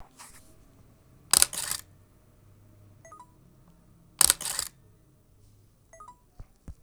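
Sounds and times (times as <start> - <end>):
Hasselblad camera shutter release: 1.3 - 1.9, 4.2 - 4.8.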